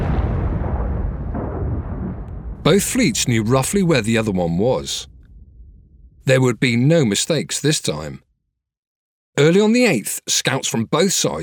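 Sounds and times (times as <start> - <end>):
bomb explosion: 0.0 - 6.8
speech: 2.6 - 5.1, 6.3 - 8.3, 9.4 - 11.4.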